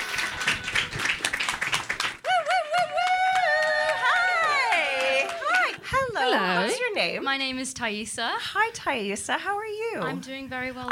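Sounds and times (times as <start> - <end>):
audience applause: 0.0 - 5.9
speech: 7.0 - 10.8.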